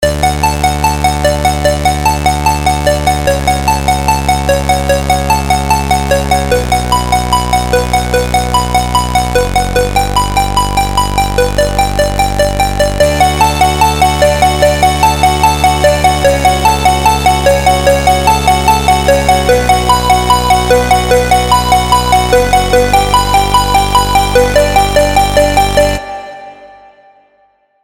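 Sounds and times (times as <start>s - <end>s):
electro melody: 0.0s - 27.3s.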